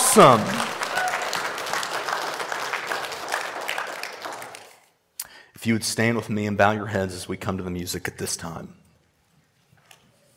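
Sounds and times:
audience clapping hands: 0.0 - 5.0
speech: 0.2 - 0.6, 5.6 - 8.8.

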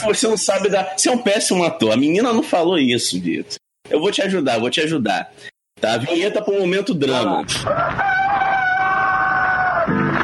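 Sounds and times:
speech: 0.0 - 8.2
rooster crowing at dawn: 7.6 - 10.2.

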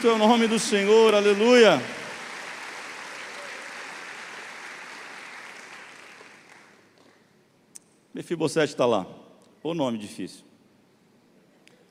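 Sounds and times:
speech: 0.0 - 2.0, 8.2 - 10.5
crowd clapping: 0.0 - 7.2.

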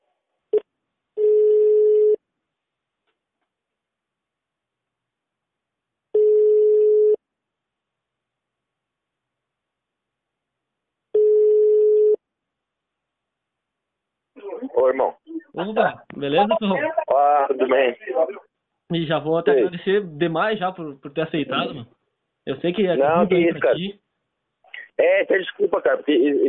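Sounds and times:
ringback tone of an outgoing phone call: 1.2 - 2.2, 6.2 - 7.2, 11.2 - 12.2
speech: 14.8 - 24.0, 25.0 - 26.4.

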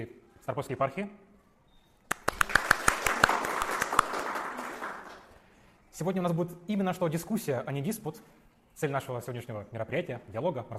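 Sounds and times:
speech: 0.0 - 1.3, 6.0 - 10.7
audience applause for a guest at a debate event: 2.1 - 5.4.

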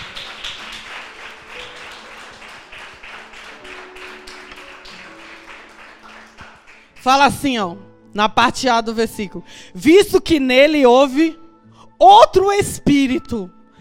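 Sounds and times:
audience applauding: 0.0 - 7.1
speech: 7.0 - 11.4, 12.0 - 13.6.

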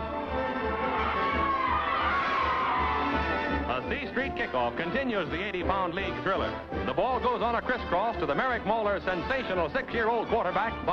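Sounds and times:
stadium crowd cheering wildly: 0.3 - 3.7
speech: 4.2 - 10.9.

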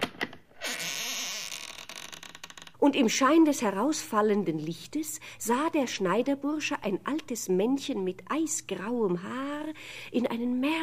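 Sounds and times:
door creaking open: 0.0 - 2.8
speech: 2.8 - 10.8.

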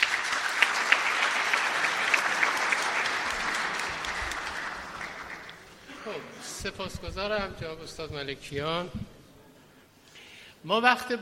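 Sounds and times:
audience applauding: 0.0 - 5.9
speech: 6.6 - 9.0, 10.6 - 11.1.

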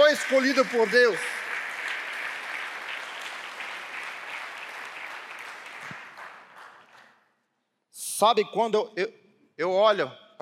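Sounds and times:
audience applauding: 0.0 - 7.2
speech: 0.1 - 1.4, 8.2 - 10.4.

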